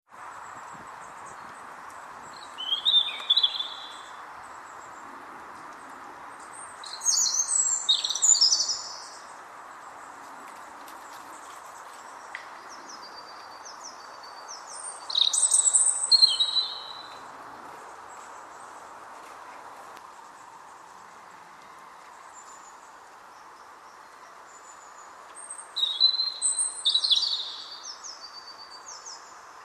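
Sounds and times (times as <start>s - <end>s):
steady background hiss: 0.1s - 29.6s
European robin song of thin whistles and trills: 2.3s - 4.2s, 6.8s - 9.2s, 12.3s - 17.2s, 25.4s - 29.3s.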